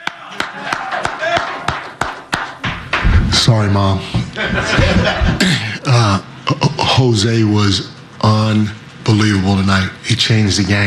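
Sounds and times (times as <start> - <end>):
hand clapping: 0.0 - 3.3
speech: 3.5 - 10.8
laughter: 4.1 - 5.6.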